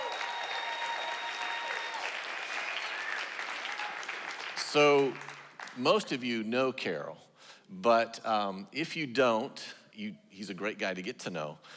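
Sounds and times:
audience applause: 0.0 - 5.8
speech: 4.7 - 11.7.

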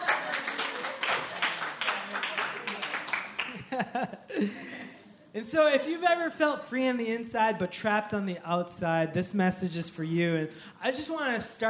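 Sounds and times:
audience round of applause: 0.0 - 3.7
laughter: 0.0 - 5.2
speech: 3.7 - 4.7, 5.3 - 11.6.

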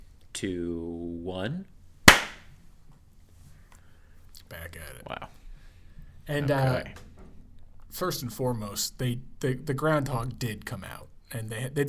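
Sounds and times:
speech: 0.4 - 1.8, 4.5 - 5.4, 6.3 - 7.0, 7.9 - 11.8
people clapping hands together: 2.1 - 2.4.

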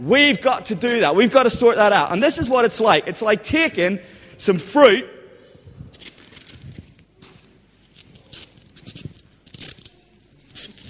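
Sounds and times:
speech: 0.0 - 5.1
tape torn to fix fruit onto a fig tree: 5.9 - 10.8.

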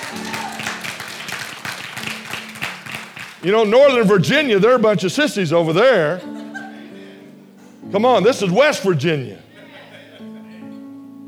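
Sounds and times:
audience applause: 0.0 - 3.4
speech: 3.4 - 6.4, 7.9 - 9.4
laughter: 5.9 - 7.0, 9.4 - 10.9.

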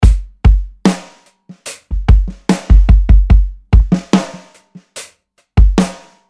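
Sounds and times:
music loop: 1.5 - 6.1.

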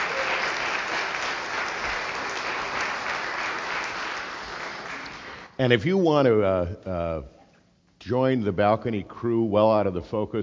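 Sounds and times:
audience applause: 0.0 - 5.5
speech: 5.6 - 7.4, 8.0 - 10.4.

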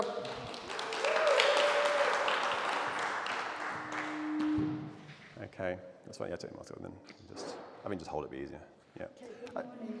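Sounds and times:
audience applause: 0.0 - 4.5
speech: 5.6 - 9.9.

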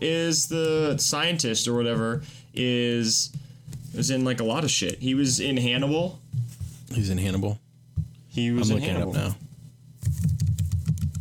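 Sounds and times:
speech: 0.0 - 7.6, 8.4 - 9.4
typing on a computer keyboard: 10.0 - 11.1.

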